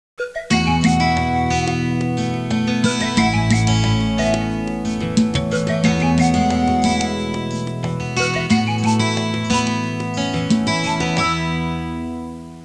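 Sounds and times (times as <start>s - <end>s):
Hawaiian music ringtone: 0.2s - 12.0s.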